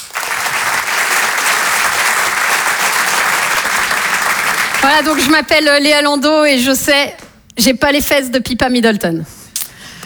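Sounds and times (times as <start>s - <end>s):
audience applause: 0.0s - 5.2s
speech: 4.8s - 9.4s.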